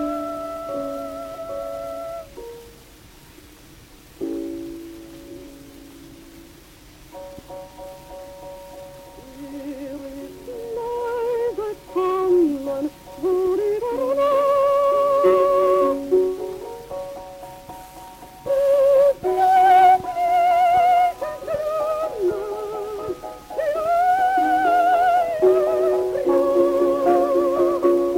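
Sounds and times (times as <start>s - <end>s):
gramophone playing: 0.0s - 2.8s, 9.1s - 17.3s, 18.1s - 28.1s.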